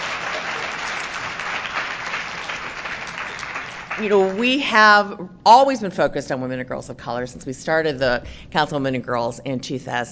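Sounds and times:
audience applause: 0.0s - 4.6s
speech: 4.0s - 10.1s.

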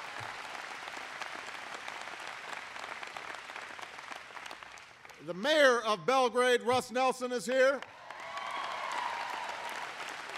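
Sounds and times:
audience round of applause: 0.0s - 5.2s, 7.8s - 10.3s
speech: 5.3s - 7.9s.

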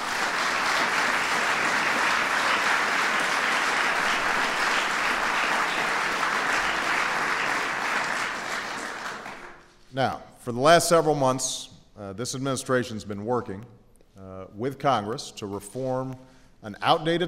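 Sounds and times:
audience applause: 0.0s - 9.6s
speech: 10.0s - 17.2s.

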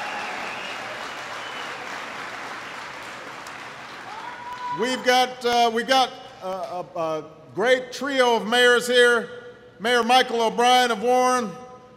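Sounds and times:
audience applause: 0.0s - 4.8s
speech: 4.8s - 11.6s.

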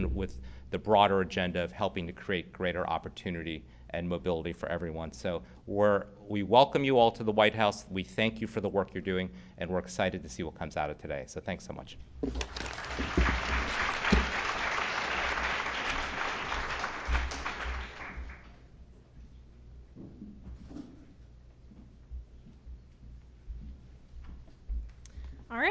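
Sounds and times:
speech: 0.0s - 14.2s
audience applause: 12.4s - 18.6s.

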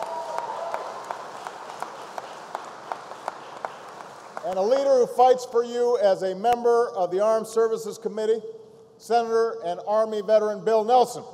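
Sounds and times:
audience applause: 0.0s - 5.0s
speech: 4.5s - 11.3s.

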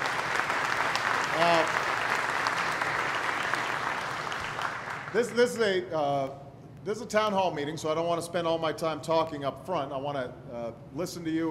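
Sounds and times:
audience applause: 0.0s - 5.4s
speech: 5.1s - 11.4s.

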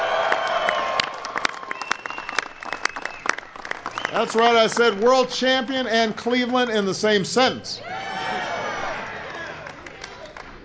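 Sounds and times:
audience at the White House clapping for the Cleveland Cavaliers: 0.0s - 6.9s, 8.3s - 10.6s
shrill whistles: 1.7s - 4.4s
speech: 4.1s - 7.9s.

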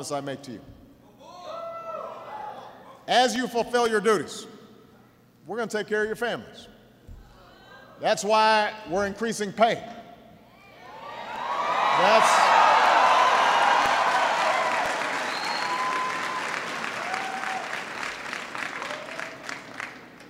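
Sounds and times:
speech: 0.0s - 0.8s, 3.1s - 4.6s, 5.5s - 6.7s, 8.0s - 10.0s
audience applause: 11.3s - 20.2s.

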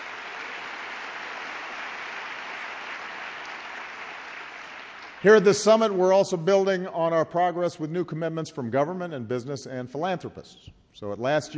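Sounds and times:
audience applause: 0.0s - 5.2s
speech: 5.2s - 11.5s.

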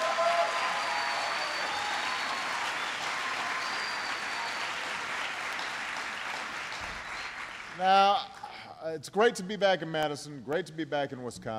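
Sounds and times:
audience applause: 0.0s - 8.2s
speech: 7.8s - 11.5s.

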